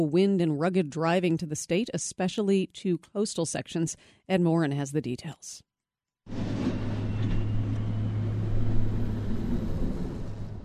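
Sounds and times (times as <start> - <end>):
speech: 0.0 - 5.7, 6.3 - 6.8
snow plows on the road: 6.3 - 10.6.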